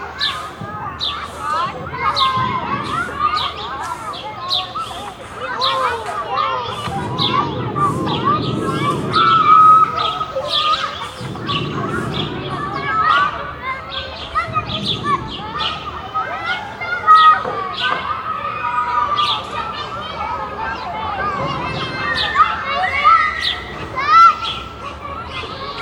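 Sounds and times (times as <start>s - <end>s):
playground ambience in Germany: 0.0s - 25.8s.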